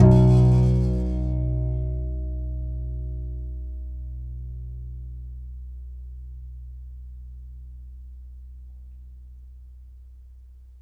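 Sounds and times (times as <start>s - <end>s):
contrabass balalaika plucked: 0.0s - 3.2s.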